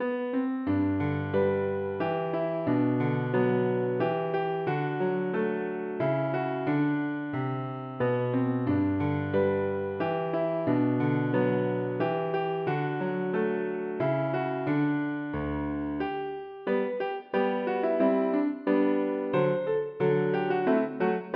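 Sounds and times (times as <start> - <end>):
piano: 0.0 - 21.3.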